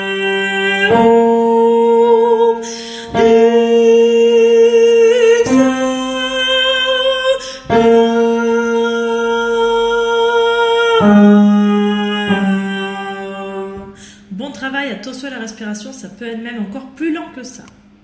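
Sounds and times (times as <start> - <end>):
tenor singing: 0.0 - 14.4.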